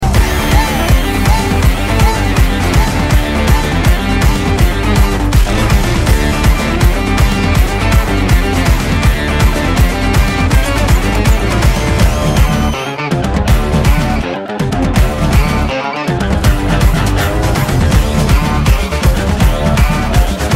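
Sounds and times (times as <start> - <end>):
background music tone: 0.0 - 20.5.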